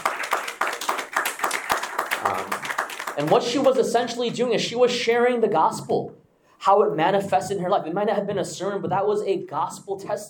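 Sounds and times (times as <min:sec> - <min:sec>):
audience applause: 0:00.0 - 0:03.8
speech: 0:02.3 - 0:10.2.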